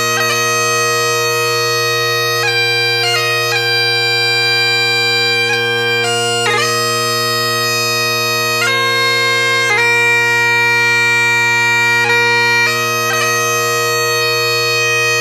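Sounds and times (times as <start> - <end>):
Highland bagpipes: 0.0 - 15.1.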